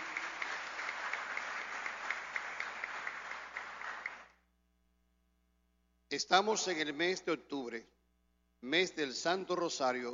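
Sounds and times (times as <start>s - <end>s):
audience applause: 0.0s - 4.4s
speech: 6.1s - 8.0s, 8.6s - 10.1s.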